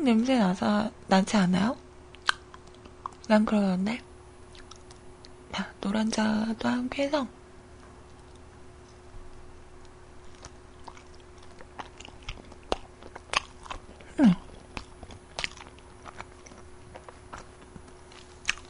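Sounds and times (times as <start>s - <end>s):
speech: 0.0s - 1.8s, 3.3s - 4.1s, 5.6s - 7.4s
low steady hum: 0.0s - 18.6s
person biting and chewing food: 2.1s - 3.3s, 4.4s - 5.4s, 8.0s - 18.6s.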